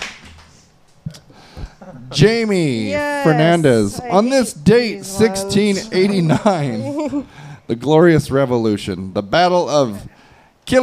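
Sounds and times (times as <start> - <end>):
sharp isolated hand claps: 0.0 - 0.7
quiet hissy background: 0.8 - 10.8
laughter: 1.6 - 7.5
speech: 1.9 - 10.8.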